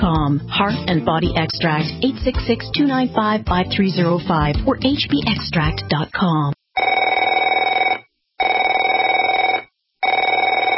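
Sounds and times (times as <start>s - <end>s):
speech: 0.0s - 6.6s
telephone ringing: 6.8s - 10.7s.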